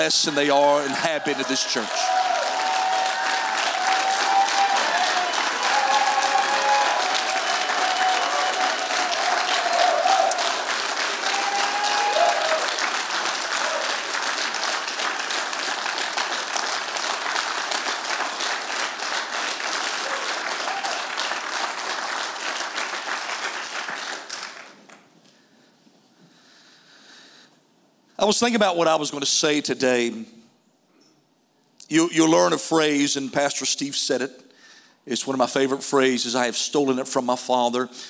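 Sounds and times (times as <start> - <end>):
speech: 0.0 - 2.4, 28.3 - 30.4, 31.9 - 34.5, 35.1 - 38.0
audience giving a round of applause: 0.0 - 25.0.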